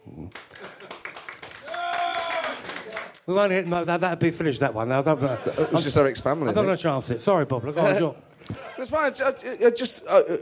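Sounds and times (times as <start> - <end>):
crowd clapping in a vote: 0.1 - 3.3
whoop or whistle: 1.6 - 2.6
speech: 3.3 - 10.4
laughter: 5.0 - 7.0.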